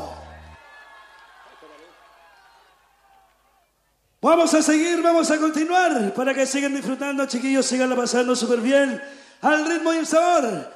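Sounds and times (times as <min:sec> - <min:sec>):
audience applause and cheering: 0:00.0 - 0:03.7
speech: 0:04.2 - 0:10.7.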